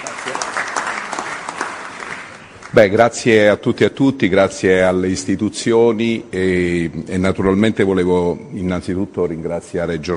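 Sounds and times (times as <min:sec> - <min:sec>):
applause for a speaker at a podium: 0:00.0 - 0:02.8
speech: 0:02.7 - 0:10.1.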